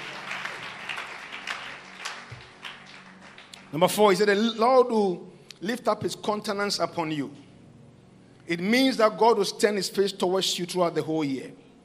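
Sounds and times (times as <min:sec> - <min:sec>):
audience clapping: 0:00.0 - 0:04.2
speech: 0:03.7 - 0:07.4, 0:08.5 - 0:11.6.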